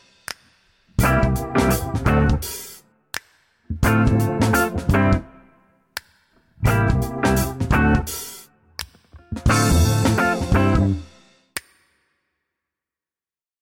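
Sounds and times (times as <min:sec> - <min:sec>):
rhythm: 0:00.0 - 0:05.4, 0:06.0 - 0:11.3.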